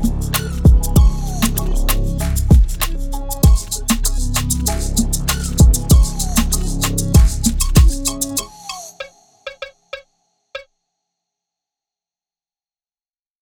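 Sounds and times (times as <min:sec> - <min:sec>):
beats in C minor: 0:00.0 - 0:10.1.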